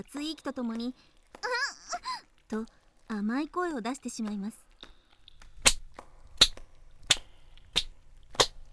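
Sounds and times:
speech: 0.0 - 4.6
spanking slaps on bare buttocks: 5.4 - 8.7.

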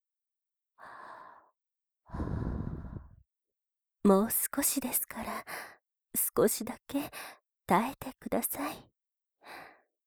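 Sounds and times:
breathing close to the ear: 2.1 - 3.2
speech: 4.0 - 8.9.

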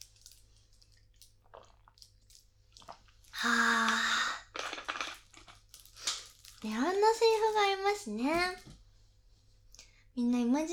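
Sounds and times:
person sipping tea in soft airy slurps: 0.9 - 4.6
speech: 6.6 - 8.7, 10.2 - 10.7.

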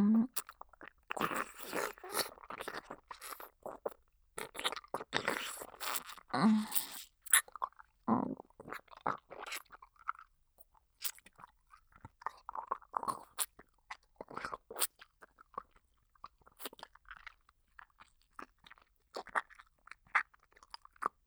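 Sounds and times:
wet mouth sounds: 0.2 - 10.3, 11.0 - 21.1
crunchy chewing: 0.3 - 7.8, 8.6 - 10.2, 11.0 - 15.8, 16.6 - 21.0.

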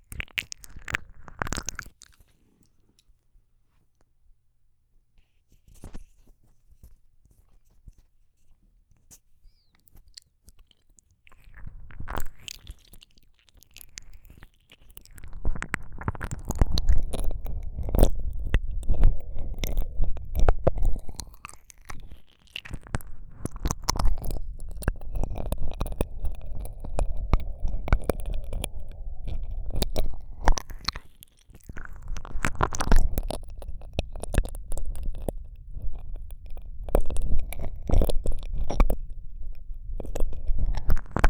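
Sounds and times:
slow sticky ear licking ASMR: 0.0 - 2.7, 11.3 - 41.2.

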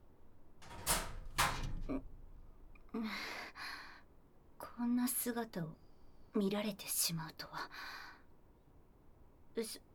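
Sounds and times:
door being opened: 0.6 - 3.0
speech: 1.9 - 2.1, 2.9 - 3.4, 4.8 - 8.0, 9.6 - 9.9.

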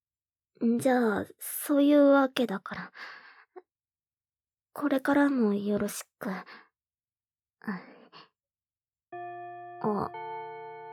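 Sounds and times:
speech: 0.6 - 3.2, 4.8 - 6.6, 7.6 - 7.9, 9.8 - 10.2
school bell chime ringing: 9.2 - 10.9.

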